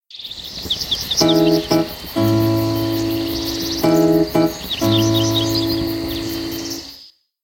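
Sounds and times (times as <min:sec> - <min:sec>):
ringtone: 0:01.2 - 0:06.8.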